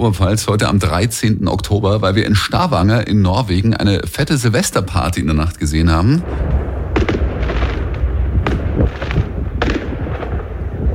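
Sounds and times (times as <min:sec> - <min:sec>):
speech: 0:00.0 - 0:06.6
large fireworks display exploding: 0:06.2 - 0:10.9.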